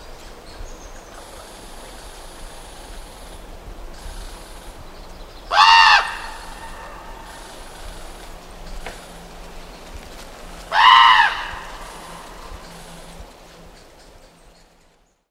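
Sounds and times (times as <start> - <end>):
raven calling: 1.1 - 4.8, 5.4 - 9.4, 10.5 - 13.9.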